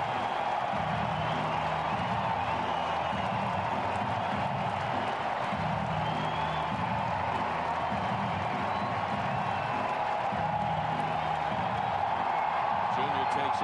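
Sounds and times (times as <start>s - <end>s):
baseball stadium crowd cheering and applauding in standing ovation: 0.0s - 13.6s.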